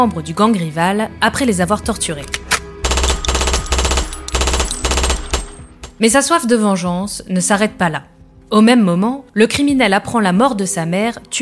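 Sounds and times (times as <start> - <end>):
speech: 0.0 - 2.5, 6.0 - 11.4
rapid automatic gunfire: 2.9 - 5.9.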